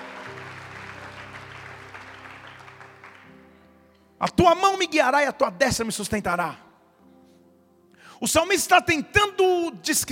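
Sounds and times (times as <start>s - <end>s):
audience clapping: 0.0s - 3.5s
speech: 4.2s - 6.6s, 8.2s - 10.1s.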